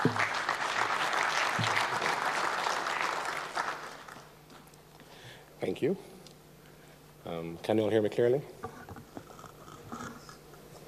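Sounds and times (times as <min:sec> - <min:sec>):
audience applause: 0:00.0 - 0:04.3
speech: 0:05.8 - 0:06.2, 0:07.2 - 0:08.8.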